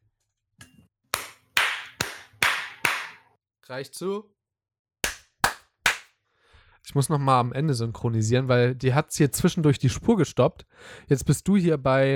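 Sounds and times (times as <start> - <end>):
sharp hand claps for audio sync: 1.2 - 3.3, 5.0 - 6.2
speech: 3.7 - 4.4, 6.9 - 12.1.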